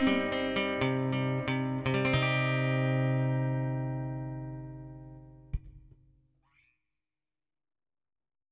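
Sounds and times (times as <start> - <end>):
acoustic music: 0.0 - 5.6.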